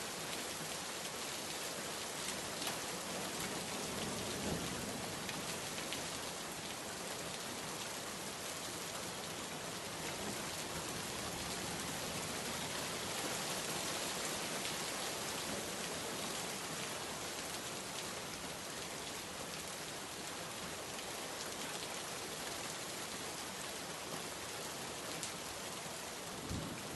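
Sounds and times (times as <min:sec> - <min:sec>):
rain sound effect: 0:00.0 - 0:26.9.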